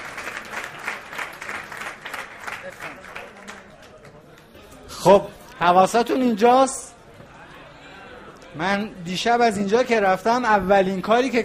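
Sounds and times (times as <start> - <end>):
audience applauding: 0.0 - 4.5
speech: 5.0 - 6.8, 8.6 - 11.4.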